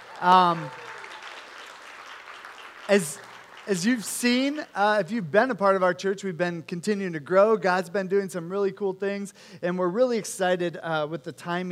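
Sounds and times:
whooping cheer: 0.0 - 2.2
crowd applause: 0.0 - 4.7
speech: 0.2 - 0.8, 2.9 - 11.7.

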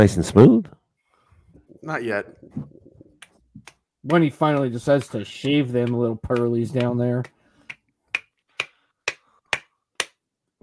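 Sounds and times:
speech: 0.0 - 0.8, 1.8 - 2.8, 4.0 - 7.4
slapping: 2.6 - 10.2.

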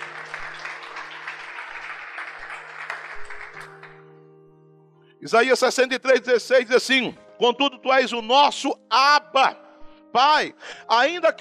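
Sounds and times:
audience applauding: 0.0 - 4.1
speech: 5.2 - 11.3.

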